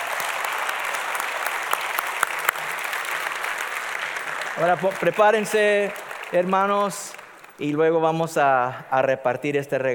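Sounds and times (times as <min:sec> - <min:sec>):
audience applause: 0:00.0 - 0:07.8
speech: 0:04.6 - 0:09.9.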